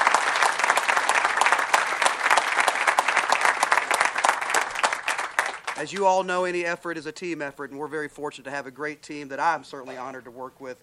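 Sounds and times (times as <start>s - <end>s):
audience applause: 0.0s - 6.0s
speech: 5.8s - 10.8s.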